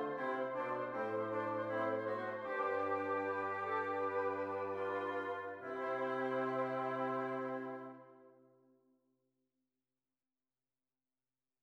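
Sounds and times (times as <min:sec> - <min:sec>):
fugue in F major: 0:00.0 - 0:08.2.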